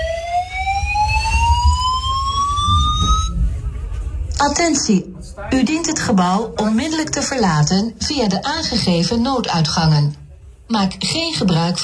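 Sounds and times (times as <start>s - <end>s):
building evacuation alarm electronic whoop: 0.0s - 3.4s
speech: 4.4s - 11.8s.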